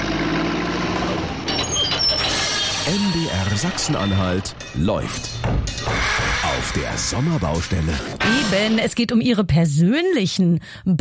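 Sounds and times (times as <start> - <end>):
construction truck and machinery diesel engine rumble: 0.0 - 8.1
beep-like tones: 1.4 - 8.9
speech: 3.6 - 10.9.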